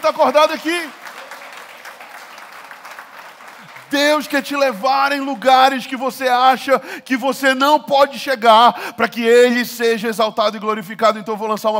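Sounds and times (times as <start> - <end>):
speech: 0.0 - 1.0, 3.9 - 11.7
applause: 0.0 - 5.4.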